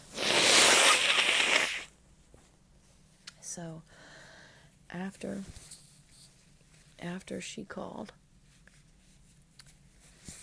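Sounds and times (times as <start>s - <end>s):
nose blowing: 0.0s - 1.9s
speech: 3.6s - 4.0s, 4.9s - 5.7s, 7.0s - 8.2s.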